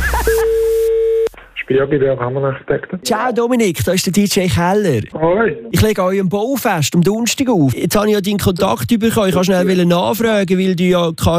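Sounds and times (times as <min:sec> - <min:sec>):
telephone line tone as a call comes in on a radio show: 0:00.0 - 0:01.3
speech: 0:01.7 - 0:11.3.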